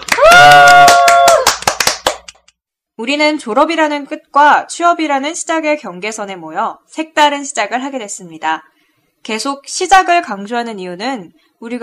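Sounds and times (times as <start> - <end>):
drawn-out vocal cheer: 0.0 - 1.6
irregular hand claps: 0.0 - 2.6
speech: 3.0 - 11.8.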